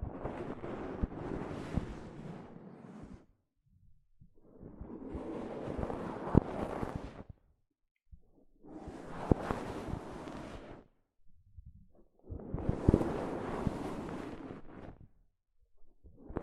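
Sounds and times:
soft fabric brushing over a microphone: 0.3s - 3.3s, 5.2s - 7.2s, 9.0s - 10.8s, 12.8s - 15.0s.

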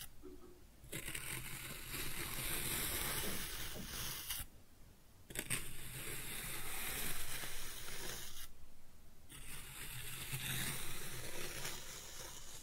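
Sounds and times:
kinetic sand cutting and scooping: 1.0s - 4.5s, 5.4s - 8.5s, 9.4s - 12.6s.

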